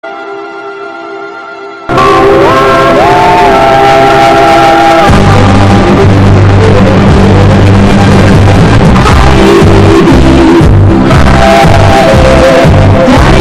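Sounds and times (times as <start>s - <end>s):
hardbass music: 1.9s - 13.3s.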